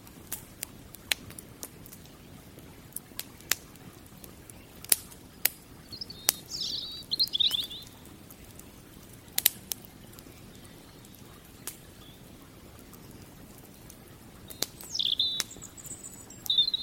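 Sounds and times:
campfire crackling: 0.0 - 16.8
robin chirping: 3.9 - 16.8.

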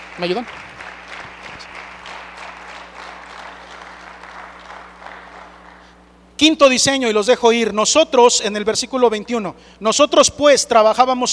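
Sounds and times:
audience applause: 0.0 - 6.0
speech: 0.2 - 0.7, 6.4 - 11.3.

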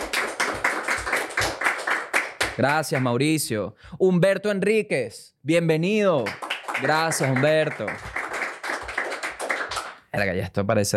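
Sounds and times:
hands clapping in applause: 0.0 - 3.4, 6.2 - 10.1
speech: 2.6 - 8.1, 10.1 - 10.9.

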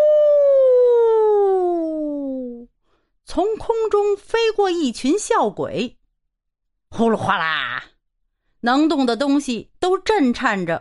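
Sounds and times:
voice imitating howling wind: 0.0 - 2.7
speech: 3.4 - 6.0, 7.0 - 7.9, 8.6 - 10.8.

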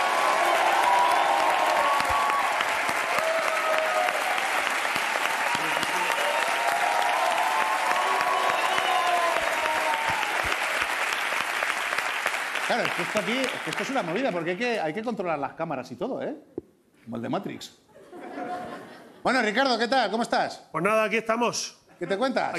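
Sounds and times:
audience applause: 0.0 - 14.6
speech: 12.8 - 16.5, 17.1 - 17.8, 19.2 - 22.5
laughter: 17.9 - 19.3.

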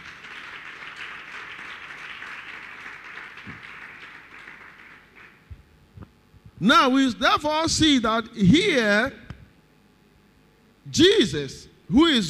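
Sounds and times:
crowd clapping hands: 0.0 - 5.7
speech: 6.6 - 9.2, 11.0 - 12.2.

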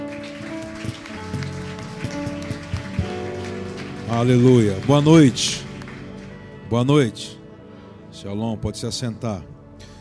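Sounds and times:
audience applauding: 0.0 - 6.4
speech: 4.1 - 5.6, 6.7 - 7.4, 8.2 - 9.5.

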